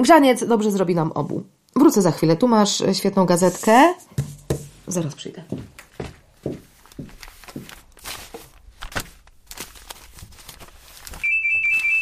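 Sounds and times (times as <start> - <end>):
speech: 0.0 - 4.3, 4.9 - 5.7
telephone ringing: 11.2 - 12.0.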